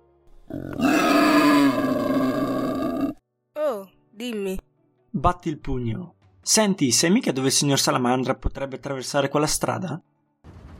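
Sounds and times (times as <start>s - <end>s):
wild boar grunting: 0.4s - 3.2s
speech: 4.2s - 4.6s, 5.2s - 10.1s.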